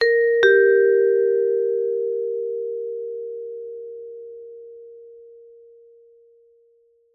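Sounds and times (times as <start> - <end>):
doorbell chime ringing: 0.0 - 2.6.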